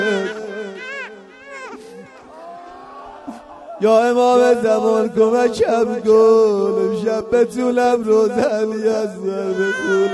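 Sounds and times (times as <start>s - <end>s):
baby crying: 0.0s - 3.8s, 9.5s - 10.1s
speech: 3.8s - 10.1s.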